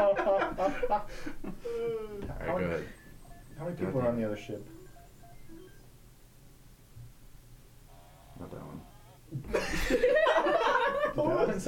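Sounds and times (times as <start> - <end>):
laughter: 0.0 - 1.6, 9.4 - 11.6
speech: 0.2 - 3.0, 3.6 - 4.8, 8.4 - 11.6
short electronic beeps: 2.4 - 6.0.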